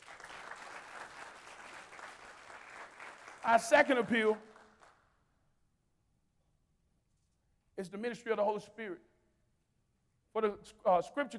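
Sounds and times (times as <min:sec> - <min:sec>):
hand clapping in praise: 0:00.0 - 0:05.0
speech: 0:03.4 - 0:04.5, 0:07.8 - 0:09.1, 0:10.4 - 0:11.3.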